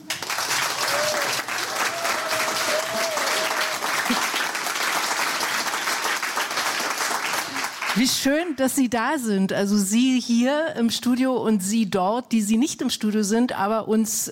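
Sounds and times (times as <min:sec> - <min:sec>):
studio audience applause: 0:00.0 - 0:08.0
speech: 0:04.1 - 0:04.3, 0:08.0 - 0:14.3.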